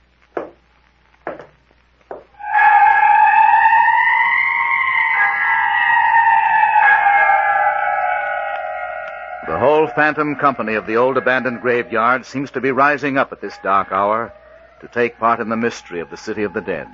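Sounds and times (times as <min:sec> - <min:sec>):
footsteps on wooden porch boards: 0:01.2 - 0:02.4
long wavering moan: 0:02.4 - 0:16.9
speech: 0:10.1 - 0:16.9.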